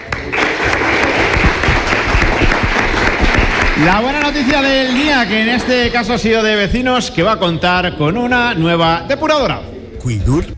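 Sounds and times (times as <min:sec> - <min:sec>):
crowd applause: 0:00.0 - 0:06.5
speech: 0:03.8 - 0:10.5.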